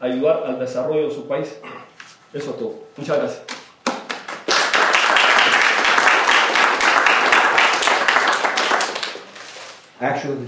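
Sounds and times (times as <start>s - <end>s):
speech: 0.0s - 3.6s, 10.0s - 10.4s
crowd applause: 4.1s - 9.4s.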